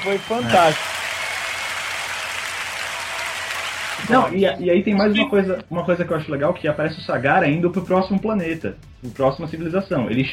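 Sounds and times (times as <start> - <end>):
speech: 0.0 - 0.9, 4.1 - 10.3
round of applause: 0.0 - 4.3.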